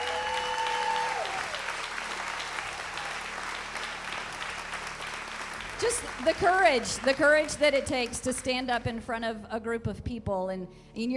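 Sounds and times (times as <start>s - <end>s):
audience applause: 0.0s - 8.5s
speech: 5.8s - 11.1s.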